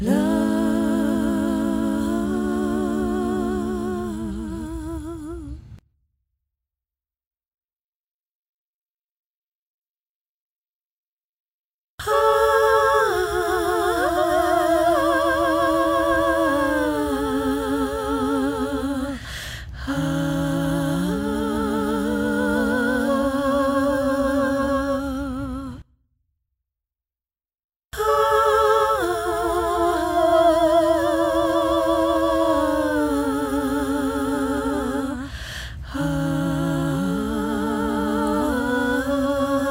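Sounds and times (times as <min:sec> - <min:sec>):
background vocals: 0:00.0 - 0:05.8, 0:12.0 - 0:25.9, 0:28.0 - 0:39.6.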